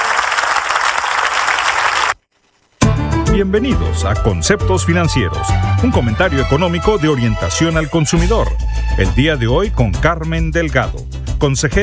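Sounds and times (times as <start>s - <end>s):
crowd applauding: 0.0s - 2.2s
speech: 3.4s - 11.8s.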